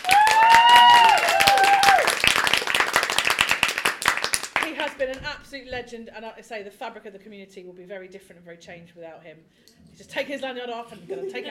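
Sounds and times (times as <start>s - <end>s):
audience applause: 0.0s - 5.0s
speech: 5.0s - 11.4s.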